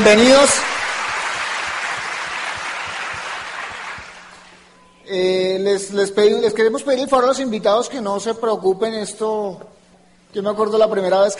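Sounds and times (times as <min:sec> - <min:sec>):
speech: 0:00.0 - 0:00.8, 0:05.1 - 0:11.3
audience applause for guests: 0:00.0 - 0:04.6.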